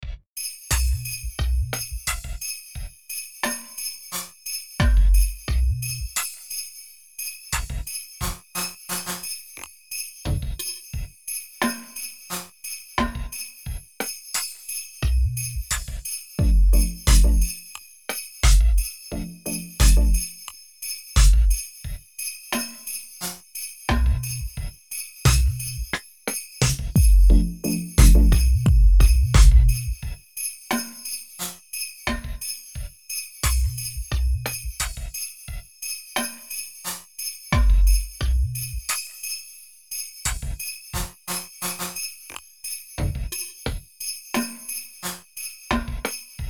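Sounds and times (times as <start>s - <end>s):
drums: 0.0s - 3.0s, 4.8s - 6.2s, 7.6s - 8.4s, 10.3s - 11.8s, 13.0s - 17.6s, 18.4s - 20.3s, 21.2s - 22.0s, 23.9s - 30.9s, 32.1s - 35.7s, 37.5s - 39.1s, 40.3s - 41.3s, 43.0s - 44.6s, 45.7s - 46.4s.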